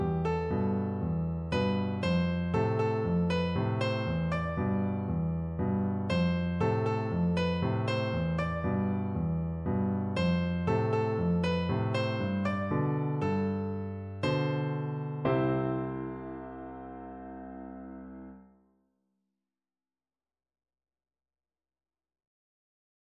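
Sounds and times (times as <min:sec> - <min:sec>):
chords: 0:00.0 - 0:18.4.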